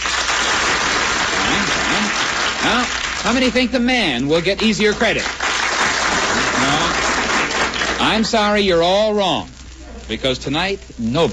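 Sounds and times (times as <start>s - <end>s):
studio audience applause: 0.0s - 3.8s, 4.6s - 8.3s
speech: 2.6s - 5.4s, 8.0s - 11.3s.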